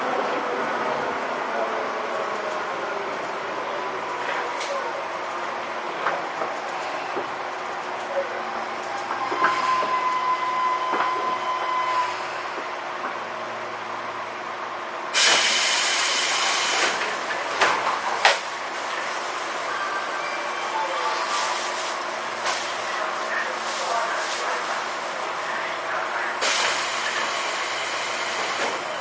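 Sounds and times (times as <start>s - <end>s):
faint voices: 0.0s - 10.0s, 19.4s - 27.5s
Tobu 10000 series train rumbling with rhythmic clacks: 0.0s - 29.0s
loud hiss: 15.2s - 17.0s.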